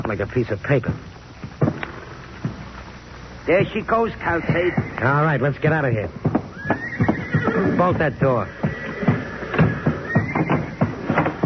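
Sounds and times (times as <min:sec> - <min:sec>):
speech: 0:00.0 - 0:01.2, 0:03.5 - 0:06.8, 0:07.6 - 0:08.7
horses neighing in panic: 0:04.2 - 0:05.5, 0:06.2 - 0:11.4.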